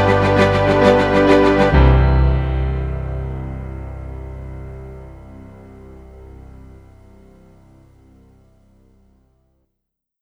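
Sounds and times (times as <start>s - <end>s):
corporate orchestral music: 0.0s - 6.7s.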